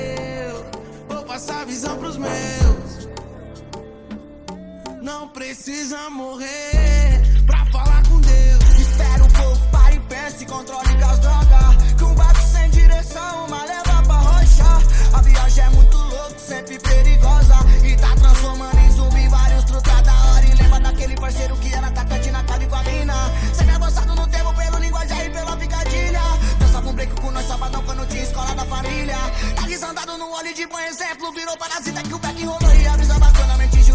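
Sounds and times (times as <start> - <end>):
deep bass: 6.8 - 10.1, 10.9 - 13.2, 13.9 - 16.2, 16.9 - 29.7, 32.6 - 33.9.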